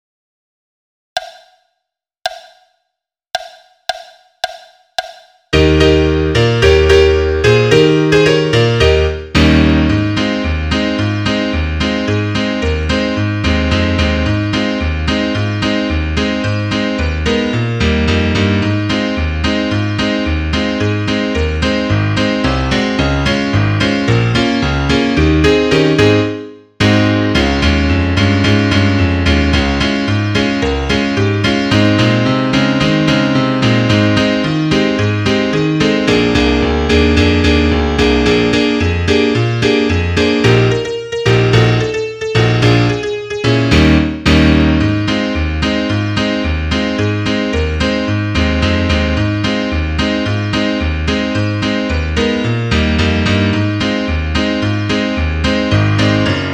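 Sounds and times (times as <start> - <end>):
solo piano: 5.6 - 56.5.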